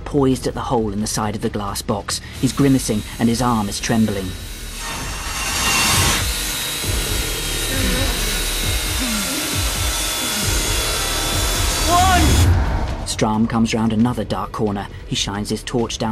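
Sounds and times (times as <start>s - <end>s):
speech: 0.1s - 4.5s, 13.2s - 16.1s
spinning saw blade: 2.3s - 12.1s
rhythmic scraping: 2.4s - 16.1s
rising whine: 5.2s - 13.1s.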